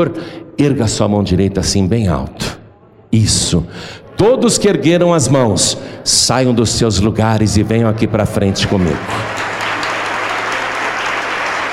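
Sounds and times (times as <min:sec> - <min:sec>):
speech: 0:00.0 - 0:09.5
audience applauding: 0:08.6 - 0:11.7.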